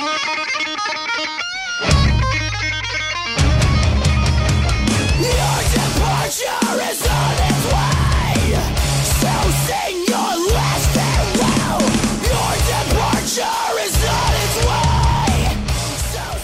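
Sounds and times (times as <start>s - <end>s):
dynamic guitar parts: 0.0s - 16.4s
scream patterns: 5.1s - 16.4s.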